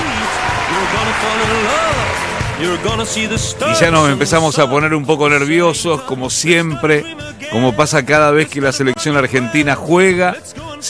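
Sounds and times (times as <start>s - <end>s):
audience ovation: 0.0s - 4.2s
speech: 0.8s - 10.8s.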